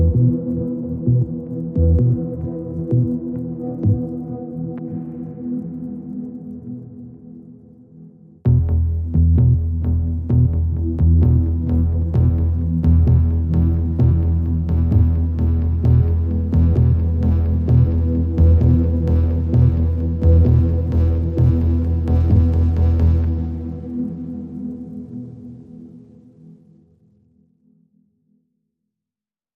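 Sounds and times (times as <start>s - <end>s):
underscore music: 0.0s - 6.8s, 8.4s - 24.7s.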